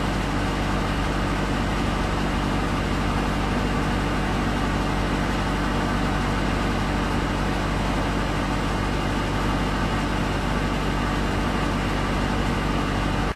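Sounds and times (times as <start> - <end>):
generator hum: 0.0 - 13.3.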